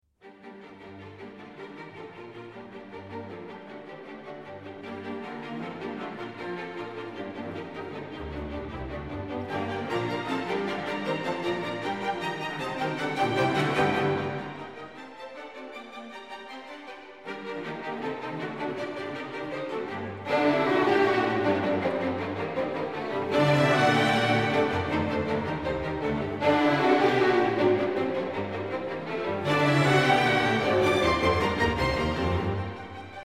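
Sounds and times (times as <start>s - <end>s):
string orchestra playing: 0.2s - 33.2s.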